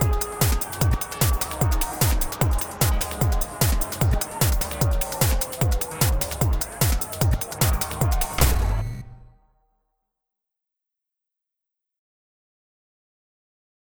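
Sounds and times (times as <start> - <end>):
instrumental music: 0.0 - 9.1.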